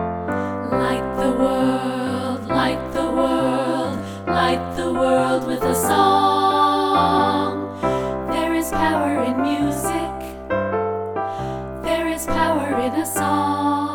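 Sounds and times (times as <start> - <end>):
vocals: 0.2 - 13.9.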